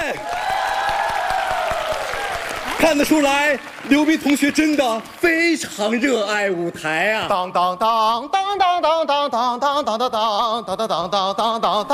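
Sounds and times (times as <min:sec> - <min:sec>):
audience applauding: 0:00.0 - 0:06.2
speech: 0:02.8 - 0:11.9.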